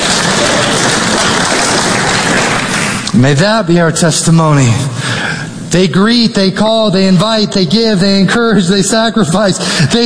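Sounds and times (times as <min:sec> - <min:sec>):
audience applause: 0:00.0 - 0:03.0
speech: 0:03.2 - 0:10.0.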